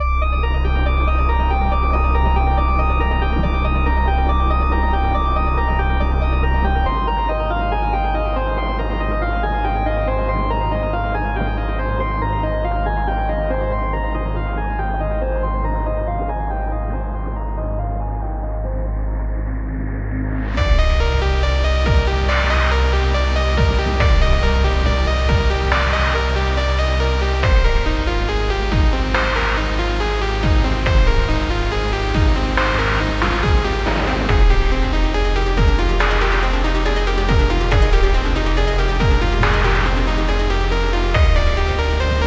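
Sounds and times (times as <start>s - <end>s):
ambient music remix: 0.0s - 42.2s.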